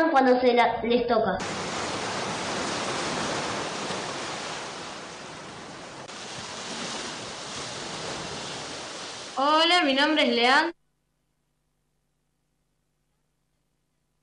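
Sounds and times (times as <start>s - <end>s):
speech: 0.0s - 1.8s, 9.4s - 10.8s
sea waves: 1.4s - 10.6s.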